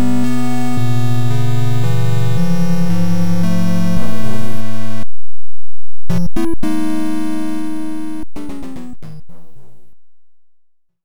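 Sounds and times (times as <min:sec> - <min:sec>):
NES fortress background chiptune game music: 0:00.0 - 0:05.0, 0:06.1 - 0:09.4.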